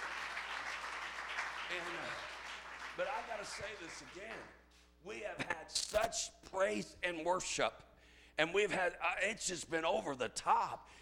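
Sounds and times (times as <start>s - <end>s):
congregation clapping in praise at a church revival meeting: 0.0s - 4.6s
speech: 1.7s - 2.3s, 3.0s - 11.0s.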